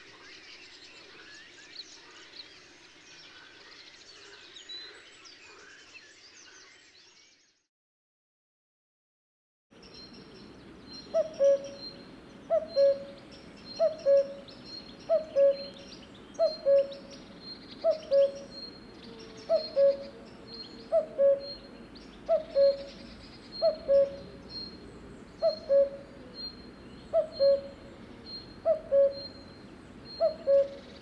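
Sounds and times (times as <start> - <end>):
faint birds twittering: 0.0 - 7.7, 9.8 - 30.9
cuckoo two-note call: 11.2 - 13.2, 13.8 - 14.5, 15.1 - 17.0, 17.9 - 18.5, 19.5 - 20.2, 20.9 - 23.0, 23.6 - 24.3, 25.4 - 26.4, 27.1 - 27.8, 28.6 - 30.9.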